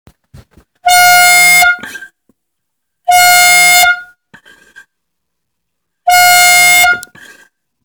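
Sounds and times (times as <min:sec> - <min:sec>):
horn: 0:00.8 - 0:02.1, 0:03.1 - 0:04.1, 0:06.1 - 0:07.3.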